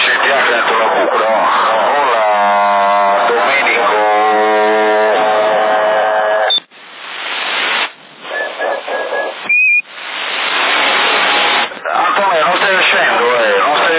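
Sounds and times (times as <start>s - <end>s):
buzzy droning tone: 0.0s - 13.9s
hissing radio static: 0.0s - 13.9s
short high-pitched radio transmission beeps: 6.4s - 6.7s, 8.2s - 9.9s.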